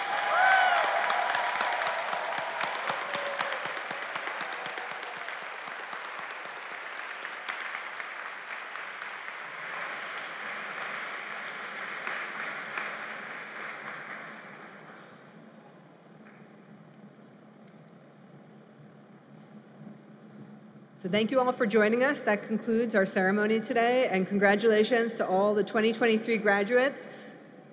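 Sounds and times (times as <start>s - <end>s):
faint cheers: 0.0s - 6.5s
audience applause: 0.0s - 15.6s
speech: 21.0s - 27.2s.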